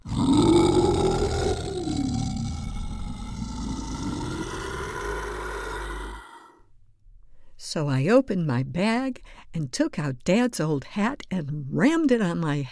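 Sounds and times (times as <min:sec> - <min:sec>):
monster howling and growling roar: 0:00.0 - 0:06.6
speech: 0:07.7 - 0:12.7.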